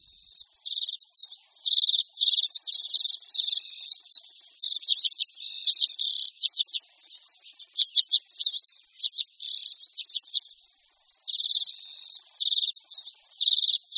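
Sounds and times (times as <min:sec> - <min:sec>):
common redpoll singing buzzy twittering trills: 0:00.0 - 0:13.9.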